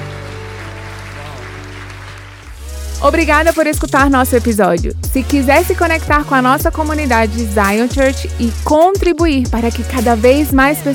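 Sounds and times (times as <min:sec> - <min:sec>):
audience applause: 0:00.0 - 0:02.6
speech: 0:03.0 - 0:10.9.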